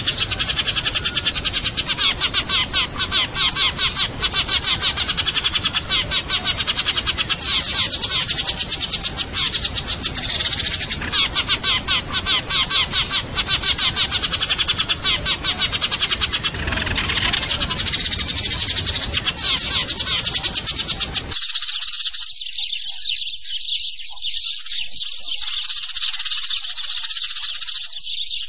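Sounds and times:
Eurasian tree sparrow chirping rapidly: 0.0 - 28.4.

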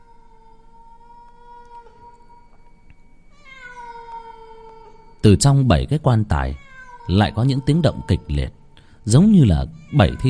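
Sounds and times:
cat wailing on a roof: 0.0 - 2.5, 3.3 - 5.2, 6.4 - 8.6, 9.4 - 10.2
speech: 5.2 - 10.2.

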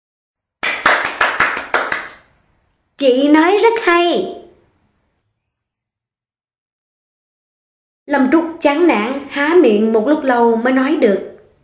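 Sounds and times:
hands clapping: 0.6 - 2.3
speech: 3.0 - 4.4, 8.1 - 11.3.

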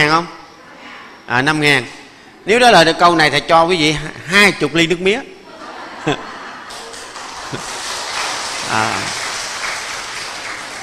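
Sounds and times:
speech: 0.1 - 0.4, 1.3 - 5.3, 6.0 - 6.3, 7.5 - 7.7, 8.7 - 9.2
laughter: 5.4 - 9.3
audience applause: 6.7 - 10.8.

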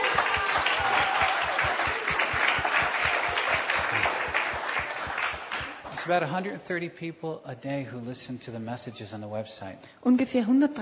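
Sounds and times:
church congregation applauding during a sermon: 0.0 - 6.6
speech: 6.1 - 10.8.

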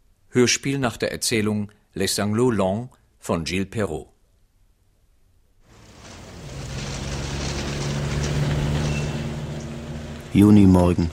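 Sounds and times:
speech: 0.4 - 4.1, 10.4 - 11.1
city street traffic noise: 5.7 - 11.1.

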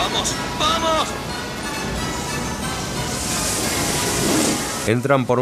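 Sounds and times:
speech: 0.2 - 1.2, 4.8 - 5.3
torrent of water rushing in: 1.8 - 4.9.

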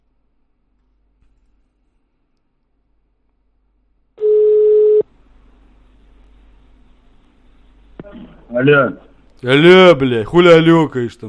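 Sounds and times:
telephone tone as a call is placed: 4.2 - 5.0
speech: 8.2 - 11.2.

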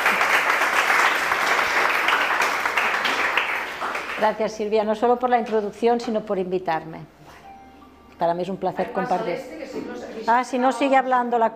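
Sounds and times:
audience applause greeting a guest at a meditation talk: 0.0 - 4.2
speech: 4.2 - 7.2, 8.2 - 11.5.

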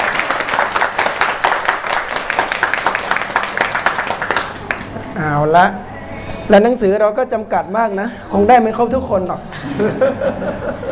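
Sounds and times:
audience applause: 0.0 - 5.0
speech: 5.2 - 5.9, 6.5 - 10.8
laughter: 9.5 - 10.8.

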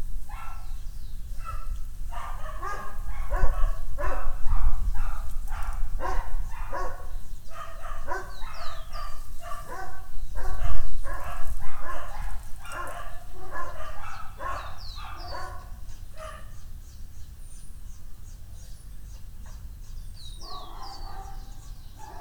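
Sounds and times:
birds chirping: 0.0 - 22.1
dogs barking: 0.3 - 0.8, 1.4 - 16.6, 20.4 - 22.1.

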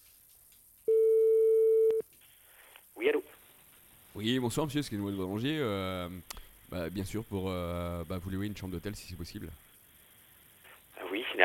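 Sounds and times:
telephone ringback tone while calling a hotel in Paris: 0.9 - 2.0
speech: 4.2 - 9.7.

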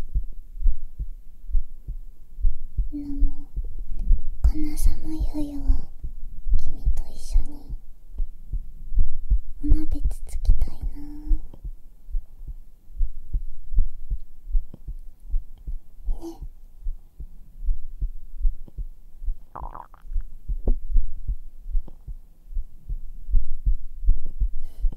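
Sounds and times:
human heartbeat thumping: 0.0 - 24.9
person speaking a soft syllable: 2.9 - 3.6, 4.4 - 6.0, 6.6 - 7.8, 9.6 - 11.6, 16.0 - 16.5
speech: 4.8 - 5.9
gurgling body sounds: 19.6 - 20.2.

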